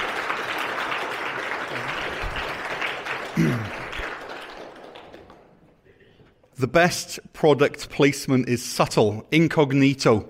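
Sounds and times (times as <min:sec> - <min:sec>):
crowd applause: 0:00.0 - 0:05.8
speech: 0:03.4 - 0:03.8, 0:06.6 - 0:10.2.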